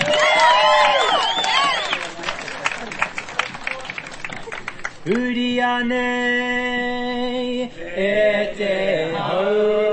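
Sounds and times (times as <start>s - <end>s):
audience applause: 0.0s - 5.0s
speech: 5.1s - 9.8s.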